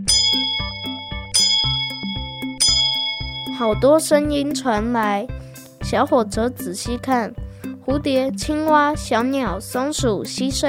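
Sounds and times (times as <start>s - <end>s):
hand bell ringing: 0.0s - 4.0s
soft bouncy low-pitched musical pattern: 0.0s - 10.6s
speech: 3.6s - 10.6s.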